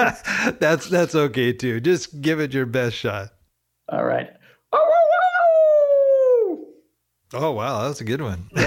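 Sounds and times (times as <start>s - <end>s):
speech: 0.0s - 5.0s, 7.3s - 8.6s
person imitating a wolf howl: 4.7s - 6.8s.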